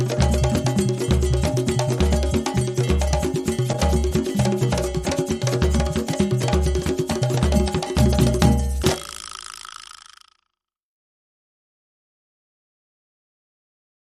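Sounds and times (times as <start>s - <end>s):
drum music: 0.0s - 9.4s.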